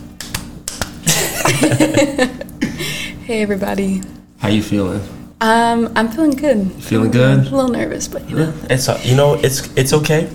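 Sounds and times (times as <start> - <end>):
hand clapping: 0.2 - 1.0
laughter: 1.1 - 2.9
speech: 1.6 - 2.5, 3.3 - 10.3.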